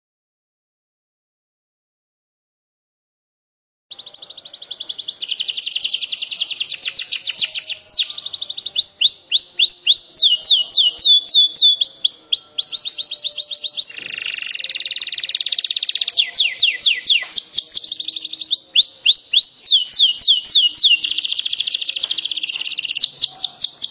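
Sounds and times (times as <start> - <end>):
standard-type Atlantic canary singing trills: 3.9 - 23.9.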